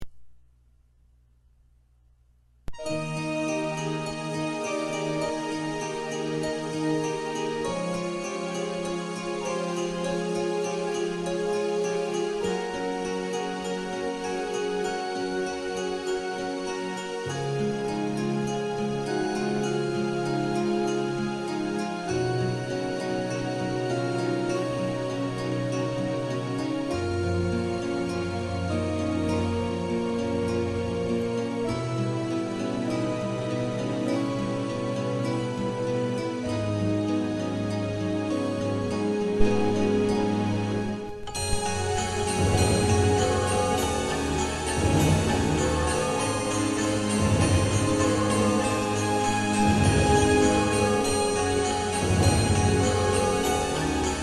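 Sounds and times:
instrumental music: 2.7s - 54.2s.

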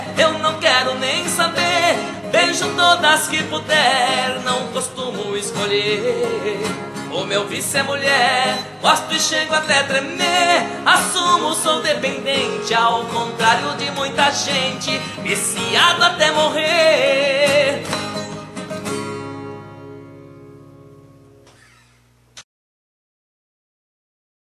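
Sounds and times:
woman singing: 0.0s - 17.9s
acoustic guitar: 0.0s - 22.1s.

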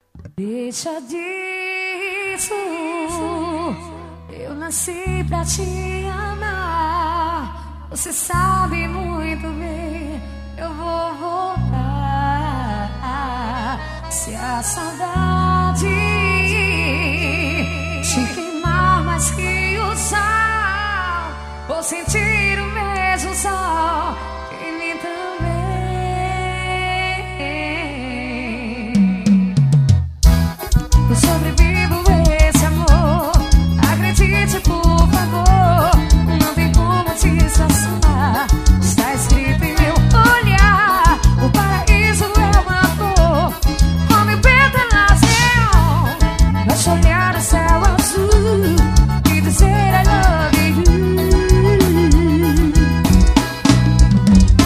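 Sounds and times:
forró real music: 3.0s - 54.6s.

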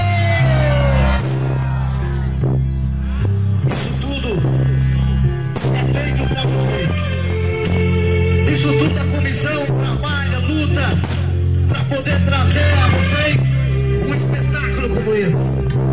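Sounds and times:
crowd shouting and cheering: 0.0s - 15.5s
pounding music with bass line: 0.0s - 15.9s.

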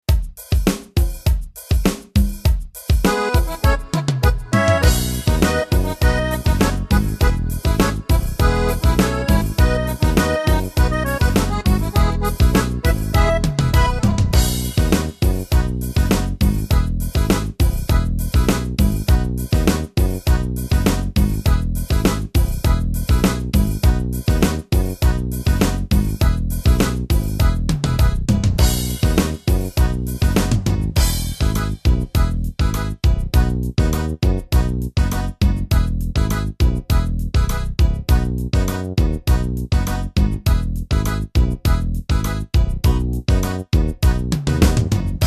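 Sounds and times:
Yamaha milonga rhythm: 0.0s - 45.2s.

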